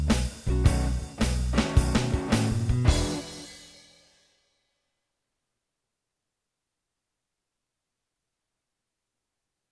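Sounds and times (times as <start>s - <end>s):
blues music in E: 0.0s - 3.7s.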